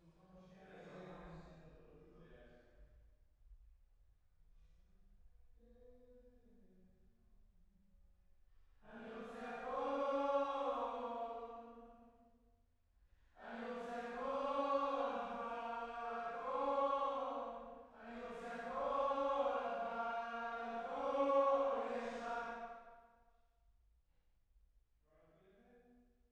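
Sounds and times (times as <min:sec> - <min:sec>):
choir singing: 0:08.9 - 0:11.9, 0:13.4 - 0:22.9.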